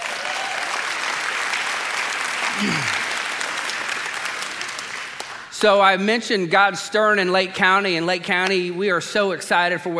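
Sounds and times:
audience clapping and cheering: 0.0 - 5.8
speech: 2.6 - 3.0, 5.6 - 9.9.

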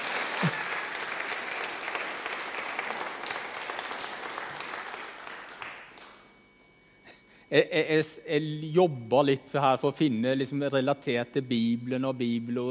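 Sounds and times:
audience applause: 0.0 - 6.2
speech: 7.5 - 12.6.

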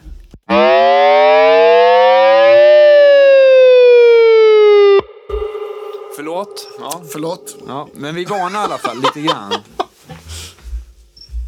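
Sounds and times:
self-oscillating flanger pedal howling: 1.3 - 9.0
laughter: 6.4 - 10.2
speech: 7.2 - 9.8.

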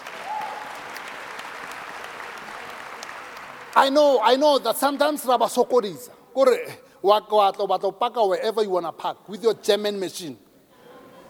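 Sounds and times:
audience applause: 0.0 - 4.2
speech: 3.8 - 10.4.

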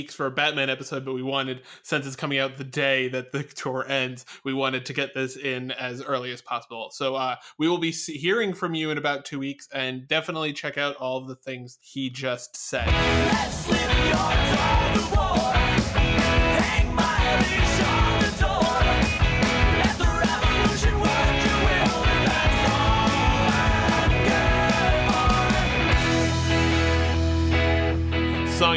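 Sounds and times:
speech: 0.0 - 15.2
recorded song with full band sound: 12.8 - 28.7.

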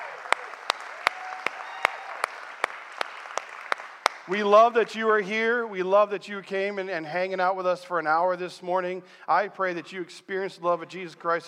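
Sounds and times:
crowd noise: 0.0 - 4.8
church congregation applauding guests during a morning service: 0.0 - 5.2
speech: 4.3 - 11.4.

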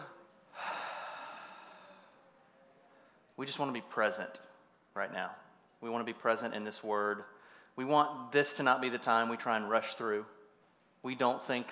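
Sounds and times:
group at a student ministry gathering breathing out: 0.5 - 2.2
speech: 3.4 - 10.4, 11.0 - 11.7.

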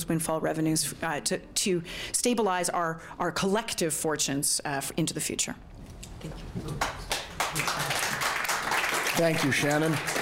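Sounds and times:
speech: 0.0 - 7.0, 9.2 - 10.1
audience applause: 6.8 - 10.1.

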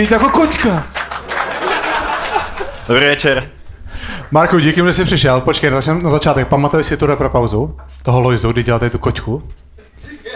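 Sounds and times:
speech: 0.0 - 0.9, 2.9 - 3.6, 4.3 - 10.2
audience applause: 0.2 - 3.0
laughter: 1.1 - 3.4, 9.8 - 10.3.

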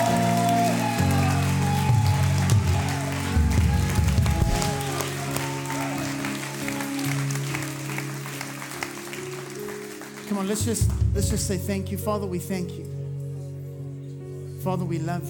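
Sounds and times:
audience clapping: 0.0 - 11.4
speech: 10.4 - 13.0, 14.6 - 15.2.

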